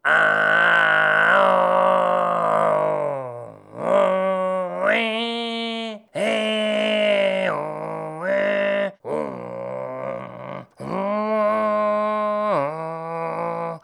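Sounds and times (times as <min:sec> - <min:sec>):
person singing: 0:00.0 - 0:13.8.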